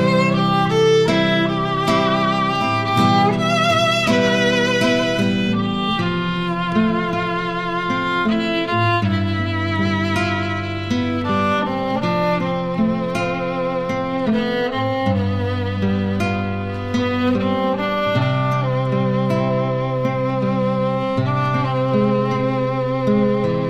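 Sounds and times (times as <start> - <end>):
crying classical guitar: 0.0 - 23.6
crying classical violin: 0.0 - 23.6.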